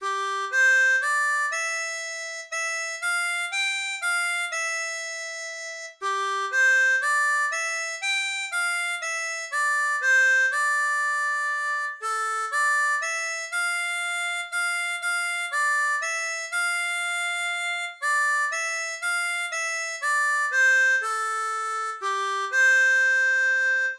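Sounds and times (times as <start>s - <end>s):
harmonica: 0.0s - 23.9s.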